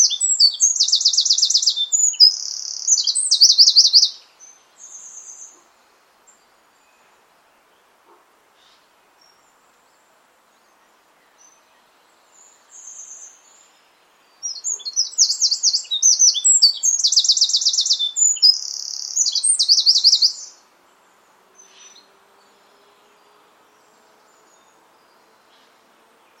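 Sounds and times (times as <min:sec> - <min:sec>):
bird chirping and trilling: 0:00.0 - 0:04.2, 0:14.4 - 0:20.6.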